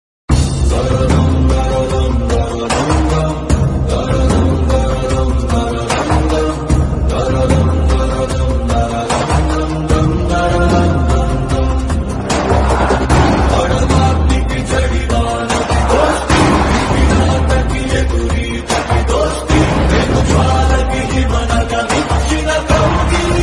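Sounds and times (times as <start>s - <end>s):
background music ringtone: 0.3s - 23.4s.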